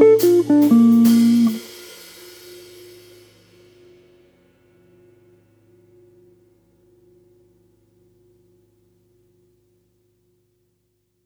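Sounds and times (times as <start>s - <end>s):
guitar playing arpeggios and simple jazz lines: 0.0s - 1.6s.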